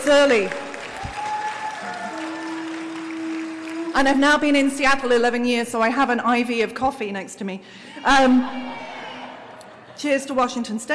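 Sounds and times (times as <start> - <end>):
speech: 0.0 - 0.6, 4.0 - 8.8, 10.0 - 10.9
audience applause: 0.2 - 4.0.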